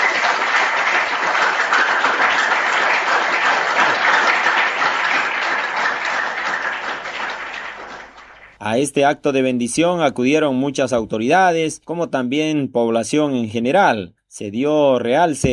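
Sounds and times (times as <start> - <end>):
audience applause: 0.0 - 8.6
speech: 8.6 - 15.5.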